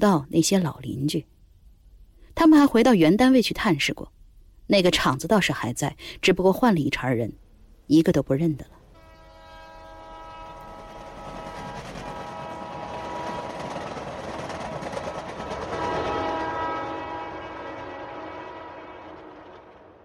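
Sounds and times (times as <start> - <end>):
speech: 0.0 - 1.4, 2.4 - 8.8
passenger train running: 8.9 - 20.0.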